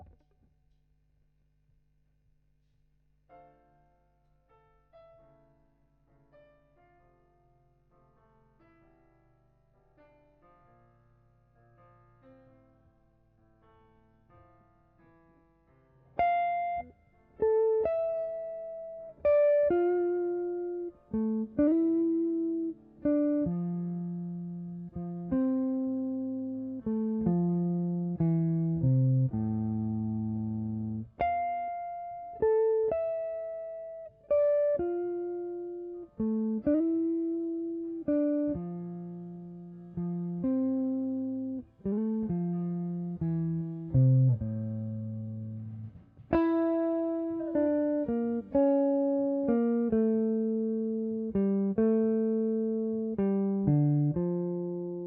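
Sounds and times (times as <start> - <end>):
guitar: 0.0 - 0.4, 16.0 - 55.0.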